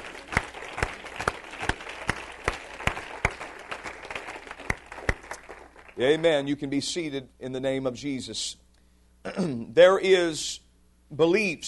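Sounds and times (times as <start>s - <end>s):
audience clapping hands: 0.0s - 6.5s
speech: 6.0s - 8.6s, 9.2s - 11.6s.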